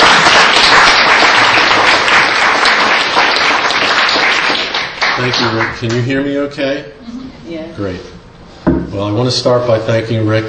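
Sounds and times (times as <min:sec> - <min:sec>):
audience round of applause: 0:00.0 - 0:06.0
speech: 0:05.3 - 0:10.4.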